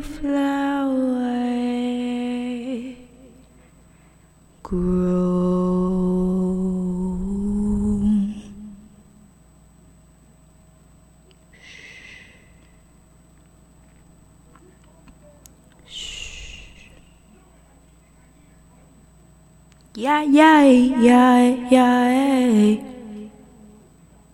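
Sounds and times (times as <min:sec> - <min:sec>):
soul a cappella vocals: 0:00.0 - 0:03.6, 0:04.6 - 0:09.3, 0:19.8 - 0:24.0.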